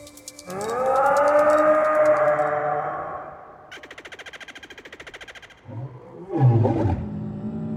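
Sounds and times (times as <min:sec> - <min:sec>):
harsh buzzing rattle: 0:00.0 - 0:02.3
dinosaur roar sound effect: 0:00.5 - 0:03.6, 0:05.6 - 0:07.7.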